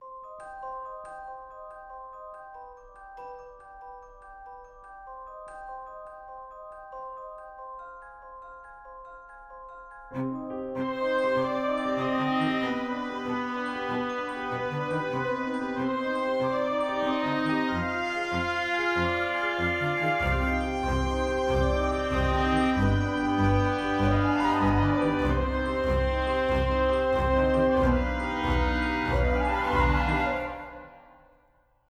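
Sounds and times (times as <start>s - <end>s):
spooky sound: 10.2s - 31.2s.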